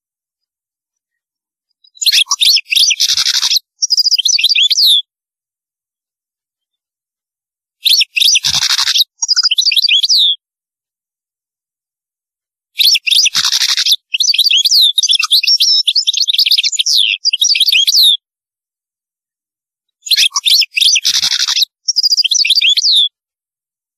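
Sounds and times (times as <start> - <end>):
European goldfinch song: 0.9 - 5.1, 7.8 - 10.4, 12.8 - 18.2, 19.9 - 23.2.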